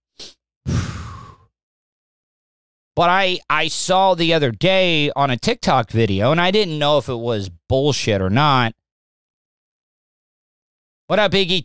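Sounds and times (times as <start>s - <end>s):
person doing the dragon breath yoga technique: 0.7s - 1.5s
speech: 3.0s - 8.8s, 11.1s - 11.6s.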